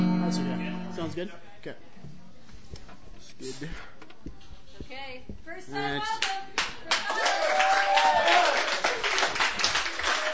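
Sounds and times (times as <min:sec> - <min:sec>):
people talking: 0:00.1 - 0:02.6, 0:03.3 - 0:07.2
scattered audience clapping: 0:06.1 - 0:10.3.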